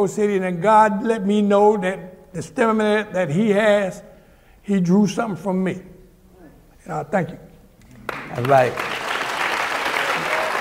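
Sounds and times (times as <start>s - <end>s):
speech: 0.0s - 4.1s, 4.7s - 5.9s, 6.9s - 7.5s, 8.3s - 8.9s
audience applauding: 8.0s - 10.5s.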